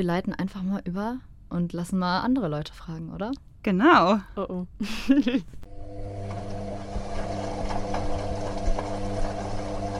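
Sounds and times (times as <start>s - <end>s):
speech: 0.0s - 5.6s
washing machine on spin cycle: 5.7s - 9.9s.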